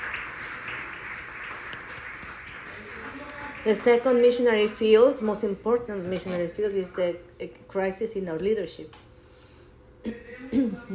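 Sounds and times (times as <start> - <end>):
audience applause: 0.0 - 4.3
speech: 3.6 - 9.0, 10.5 - 10.9.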